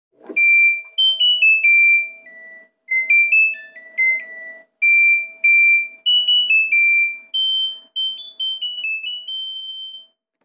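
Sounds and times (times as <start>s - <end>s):
washing machine end alarm: 0.3s - 10.2s.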